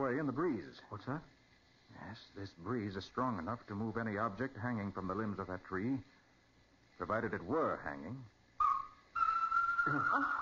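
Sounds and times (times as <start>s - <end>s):
speech: 0.0s - 6.2s, 7.0s - 8.4s, 9.8s - 10.4s
bird calling near an old barn: 8.6s - 10.4s.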